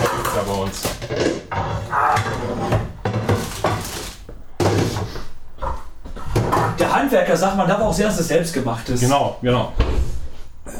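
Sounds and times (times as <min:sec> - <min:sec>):
pans and cookware clattering in a kitchen cupboard: 0:00.0 - 0:05.2, 0:06.3 - 0:07.0
speech: 0:00.4 - 0:01.3, 0:07.0 - 0:10.1.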